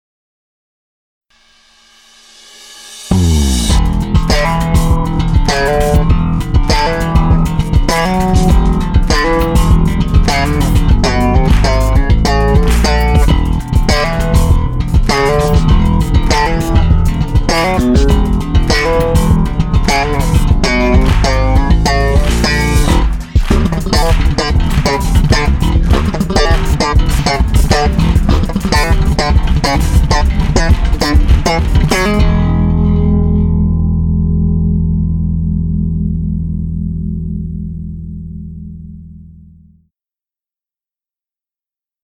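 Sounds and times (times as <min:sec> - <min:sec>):
ME-20B guitar effects patch: 0:01.4 - 0:39.8.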